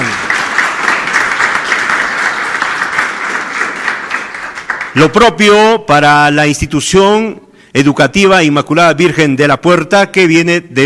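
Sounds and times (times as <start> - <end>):
applause: 0.0 - 5.6
speech: 5.0 - 10.8.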